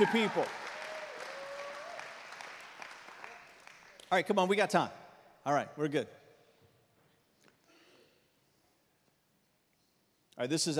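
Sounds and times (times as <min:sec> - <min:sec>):
speech: 0:00.0 - 0:00.6, 0:04.1 - 0:06.2, 0:10.4 - 0:10.7
audience clapping: 0:00.0 - 0:04.3.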